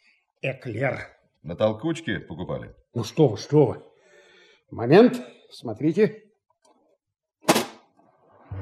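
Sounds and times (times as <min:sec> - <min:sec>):
speech: 0:00.4 - 0:03.9, 0:04.7 - 0:06.2
sharp pop: 0:07.4 - 0:08.0.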